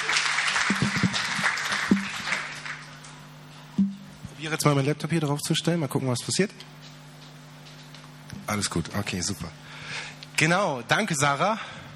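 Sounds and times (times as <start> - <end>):
audience applause: 0.0 - 3.0
speech: 4.4 - 6.9, 8.5 - 9.8, 10.4 - 11.8.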